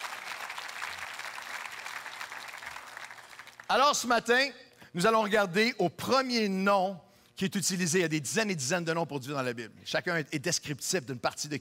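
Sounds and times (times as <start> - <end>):
applause: 0.0 - 3.7
speech: 3.7 - 11.5.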